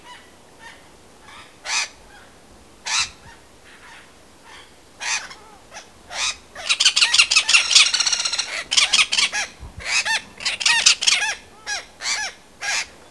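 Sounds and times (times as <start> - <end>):
great spotted cuckoo calls: 2.9 - 13.0.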